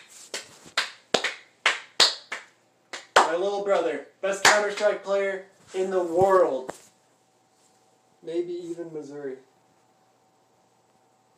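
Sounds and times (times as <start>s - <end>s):
hands clapping: 0.0s - 5.0s
speech: 3.3s - 6.8s, 8.2s - 9.5s.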